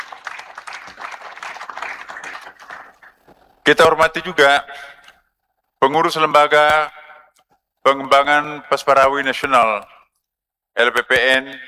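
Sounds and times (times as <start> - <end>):
audience applause: 0.0 - 3.4
speech: 3.7 - 5.0, 5.8 - 7.0, 7.8 - 9.9, 10.8 - 11.6.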